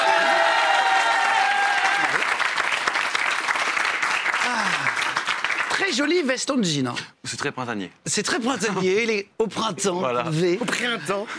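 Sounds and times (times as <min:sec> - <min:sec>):
crowd whooping and voices: 0:00.0 - 0:02.4
audience applause: 0:00.0 - 0:06.1
speech: 0:05.9 - 0:11.3.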